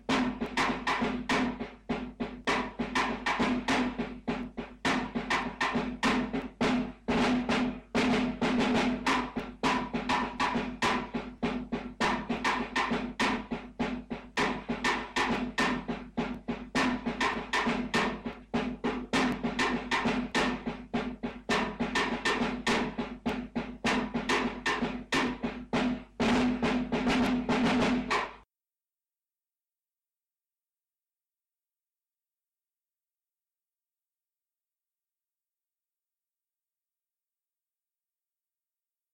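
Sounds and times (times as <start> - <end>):
drum: 0.0 - 28.5.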